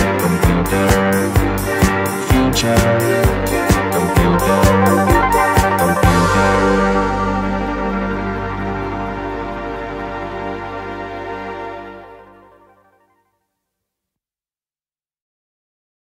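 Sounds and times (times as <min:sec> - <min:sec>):
disco computer music: 0:00.0 - 0:12.2.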